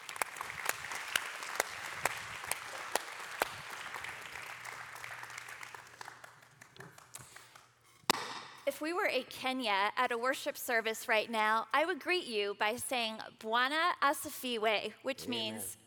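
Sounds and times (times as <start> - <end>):
audience applause: 0.0 - 7.6
speech: 8.8 - 15.8.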